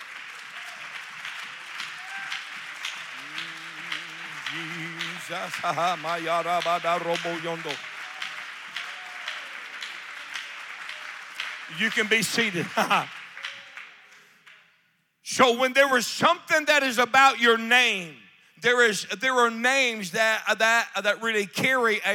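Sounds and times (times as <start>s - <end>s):
audience clapping hands in praise: 0.0s - 14.8s
speech: 4.5s - 7.9s, 11.7s - 13.2s, 15.4s - 22.1s.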